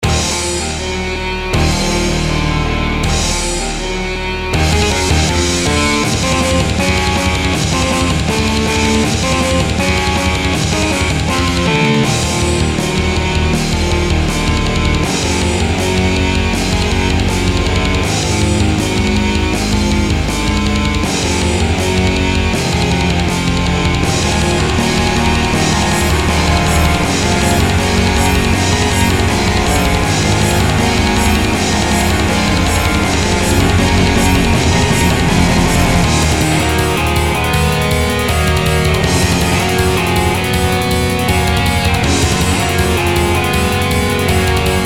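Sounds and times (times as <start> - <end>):
metal music: 0.0 - 44.8.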